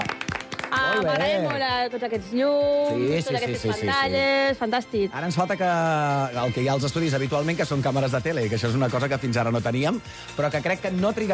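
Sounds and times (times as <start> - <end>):
studio audience clapping: 0.0 - 1.8
speech: 0.9 - 11.3.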